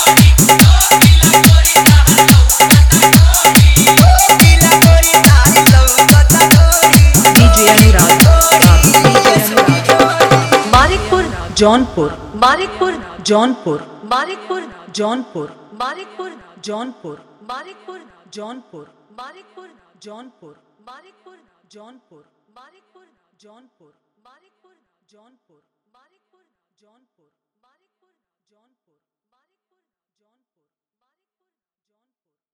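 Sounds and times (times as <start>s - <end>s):
Bhojpuri dholak bass remix: 0.0s - 13.3s.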